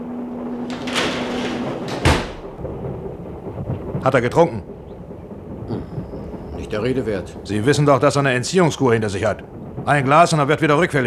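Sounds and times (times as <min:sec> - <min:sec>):
door swinging shut with a solid thud: 0:00.5 - 0:02.6
speech: 0:04.0 - 0:04.8, 0:06.7 - 0:11.0.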